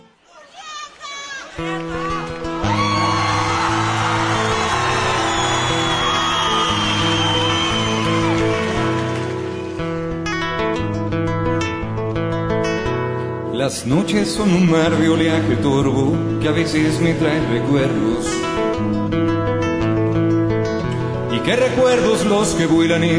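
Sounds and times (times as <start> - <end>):
crowd cheering: 0.0 - 10.6
speech: 1.6 - 2.1, 13.7 - 19.2, 21.5 - 23.1
song: 2.4 - 23.1.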